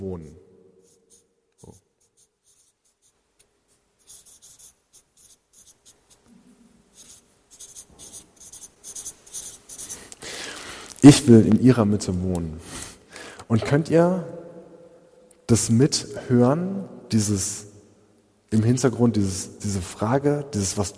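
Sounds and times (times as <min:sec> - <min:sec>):
speech: 0:00.0 - 0:00.4, 0:11.0 - 0:12.8, 0:13.5 - 0:14.4, 0:15.5 - 0:17.7, 0:18.5 - 0:20.9
pen writing by hand on paper: 0:00.8 - 0:03.2, 0:04.0 - 0:06.3, 0:06.9 - 0:10.1.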